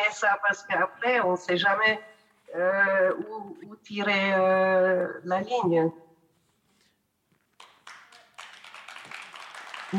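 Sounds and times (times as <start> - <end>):
speech: 0.1 - 6.1
scattered applause from a small group in a hall: 7.6 - 9.9.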